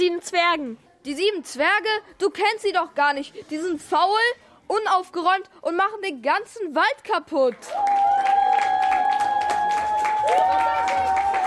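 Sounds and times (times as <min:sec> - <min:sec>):
speech: 0:00.0 - 0:08.4, 0:10.3 - 0:11.4
audience applause: 0:07.7 - 0:11.4.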